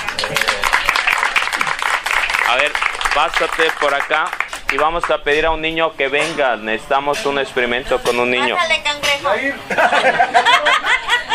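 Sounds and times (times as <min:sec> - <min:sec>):
audience applause: 0:00.0 - 0:04.9
speech: 0:02.5 - 0:11.3
laughter: 0:09.6 - 0:11.3.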